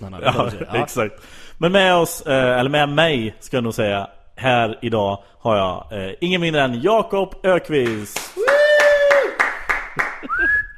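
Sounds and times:
speech: 0:00.1 - 0:08.5
single person clapping for themselves: 0:07.8 - 0:10.4
loud sustained whistle gliding upward: 0:10.3 - 0:10.7.

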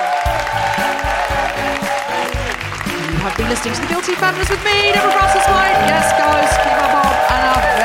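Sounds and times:
audience clapping and cheering: 0:00.0 - 0:07.8
music with a pulsing rhythmic bass line: 0:00.3 - 0:07.8
speech: 0:03.2 - 0:07.8.

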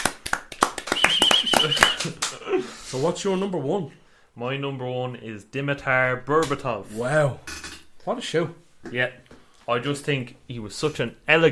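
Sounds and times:
round of applause: 0:00.0 - 0:02.3
speech: 0:01.6 - 0:11.5.

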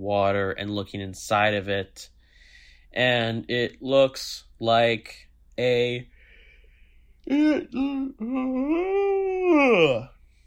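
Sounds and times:
speech: 0:00.0 - 0:02.2, 0:02.9 - 0:06.1, 0:07.3 - 0:10.1
person yawning loudly: 0:07.3 - 0:10.1.

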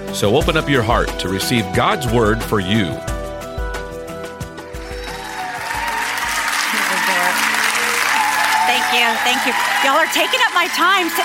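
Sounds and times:
speech: 0:00.1 - 0:03.1, 0:09.2 - 0:11.2
audience applause: 0:04.8 - 0:11.2.

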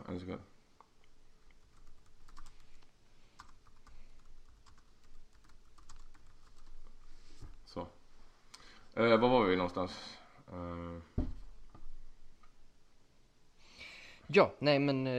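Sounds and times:
speech: 0:00.1 - 0:00.6, 0:07.7 - 0:08.0, 0:09.0 - 0:11.3, 0:14.3 - 0:15.1
typing a message on a computer keyboard: 0:01.5 - 0:07.0.

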